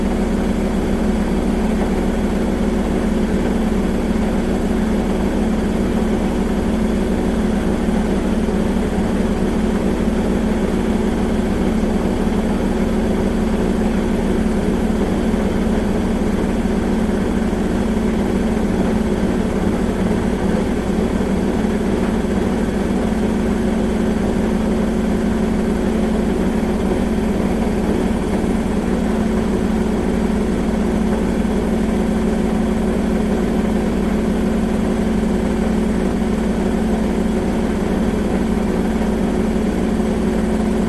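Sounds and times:
modern washing machine spin cycle: 0.0s - 40.8s.

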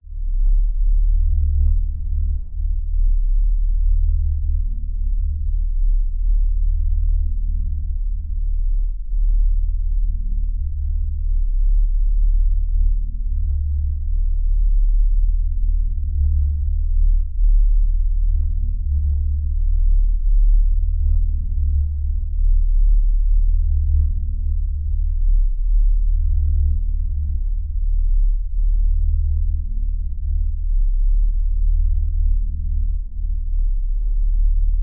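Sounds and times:
science fiction force field LFE sub bass drone pulsating: 0.0s - 34.8s.

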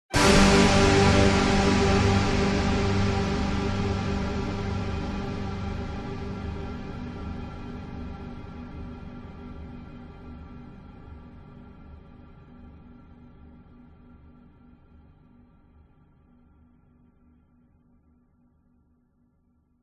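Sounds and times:
dramatic sudden cinematic orchestral hit: 0.2s - 8.7s.

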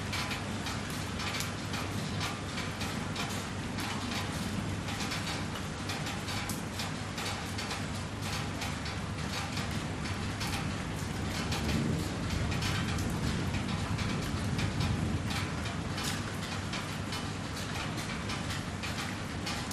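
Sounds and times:
very light rain on a house metal roof outside: 0.0s - 19.7s
distant thunder: 11.4s - 16.1s.

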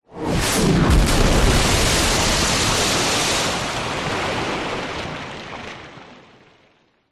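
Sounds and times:
large water bomb splash: 0.2s - 4.4s
warfare missile hitting water: 0.3s - 5.3s.

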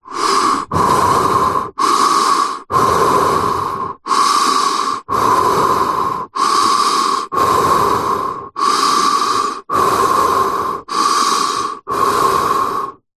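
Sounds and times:
person breathing inside a motorcycle helmet: 0.0s - 13.1s.

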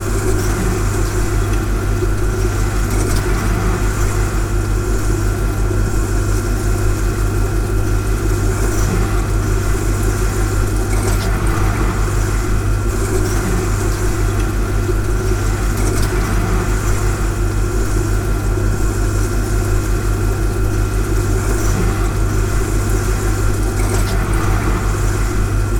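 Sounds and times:
refrigerator hum recorded inside: 0.0s - 25.7s.

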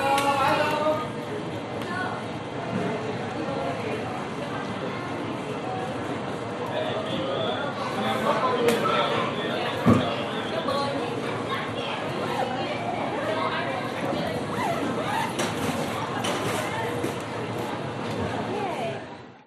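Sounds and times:
binaural airport check-in ambience at LAX T5: 0.0s - 19.4s.

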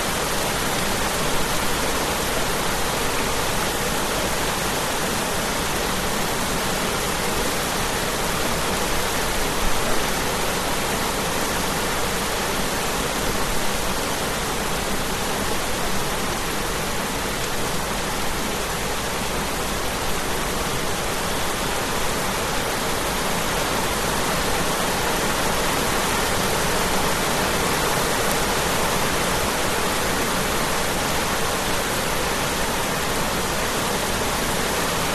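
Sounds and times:
heavy diffused rain on rice fields and concrete in Bali Indonesia: 0.0s - 35.1s.

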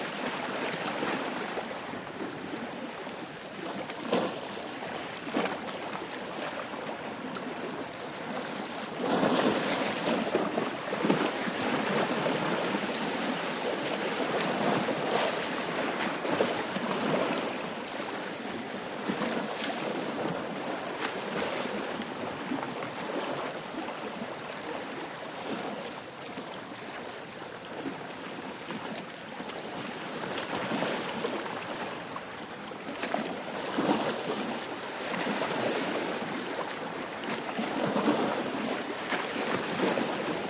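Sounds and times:
sea waves lapping: 0.0s - 40.4s.

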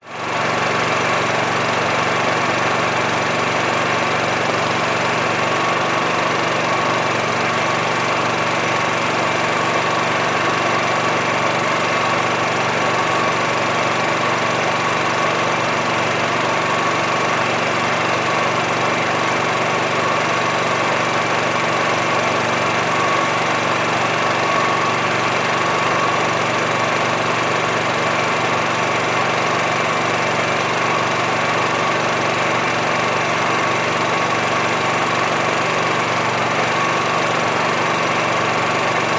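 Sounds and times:
gas power generator exhaust: 0.1s - 39.1s.

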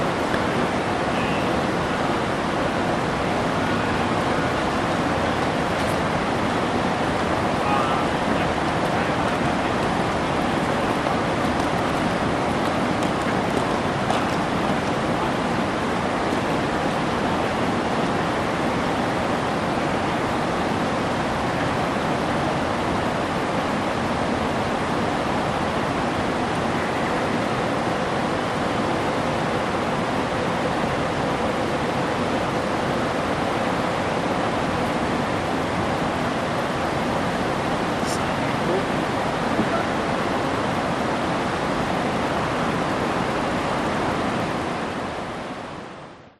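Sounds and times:
fountain: 0.0s - 46.2s
city hum: 0.0s - 46.3s
few people walking by in a public place: 7.6s - 15.5s.

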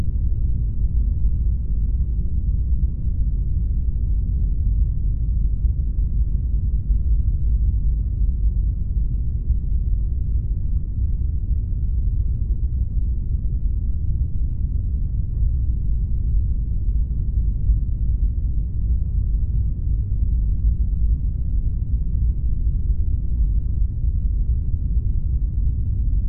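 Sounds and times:
science fiction spacecraft onboard ambience with medium speed airy rumble: 0.0s - 26.2s.

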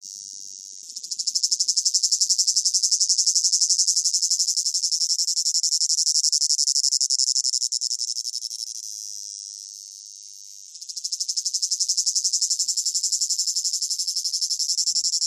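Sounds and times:
cicada song with piercing pulsing whine: 0.1s - 8.9s, 9.8s - 15.2s.

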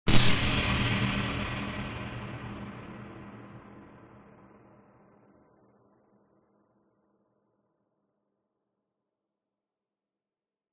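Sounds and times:
sharp bright tense cinematic hit stab: 0.1s - 4.8s.

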